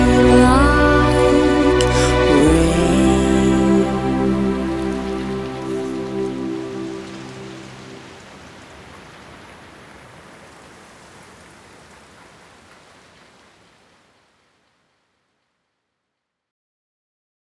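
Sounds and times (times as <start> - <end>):
melodic house music at 120 BPM: 0.0 - 7.7.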